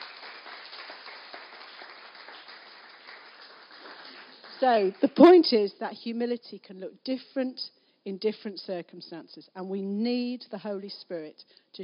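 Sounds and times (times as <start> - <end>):
audience clapping: 0.0 - 5.3
speech: 4.6 - 11.8.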